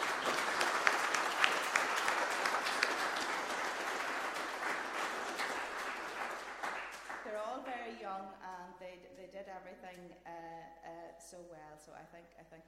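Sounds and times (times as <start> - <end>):
audience applause: 0.0 - 7.6.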